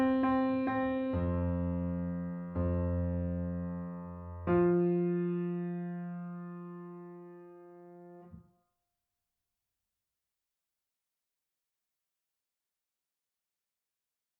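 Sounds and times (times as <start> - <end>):
prelude music: 0.0 - 8.4.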